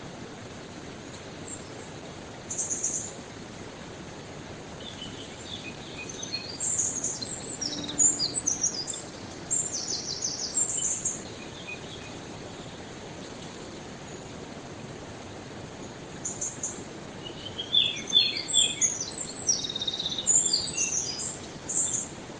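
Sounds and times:
steady hiss: 0.0 - 22.3
Eurasian wren song: 4.8 - 13.4, 15.9 - 22.2.

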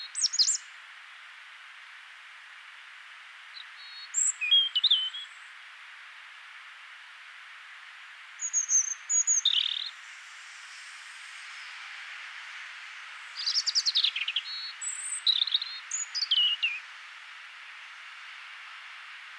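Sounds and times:
European robin singing: 3.6 - 5.4, 8.4 - 10.0, 13.4 - 16.9
hiss: 9.8 - 15.2.

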